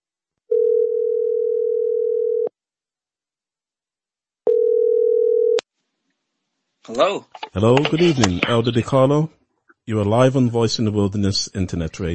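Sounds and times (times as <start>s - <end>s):
telephone tone as a call goes out: 0.5s - 2.5s, 4.5s - 5.6s
speech: 6.9s - 12.1s.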